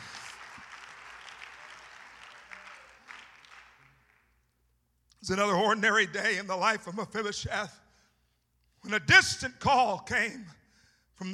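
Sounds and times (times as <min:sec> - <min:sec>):
audience clapping: 0:00.0 - 0:04.5
speech: 0:05.2 - 0:07.8, 0:08.9 - 0:10.6.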